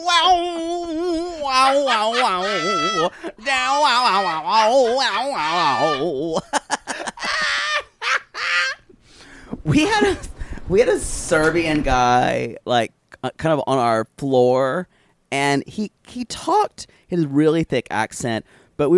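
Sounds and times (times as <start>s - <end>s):
voice imitating a wailing guitar solo: 0.0s - 6.4s
laughter: 1.4s - 8.9s, 9.7s - 10.4s
speech: 1.6s - 6.5s, 9.7s - 18.9s.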